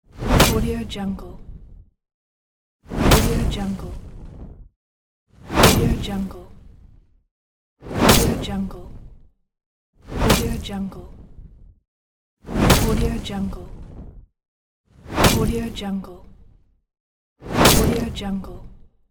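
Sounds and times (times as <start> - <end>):
fire sword hitting leather armour: 0.3 - 0.6, 3.0 - 3.5, 5.6 - 6.0, 8.0 - 8.5, 10.2 - 10.6, 12.6 - 13.2, 15.2 - 15.5, 17.6 - 18.1.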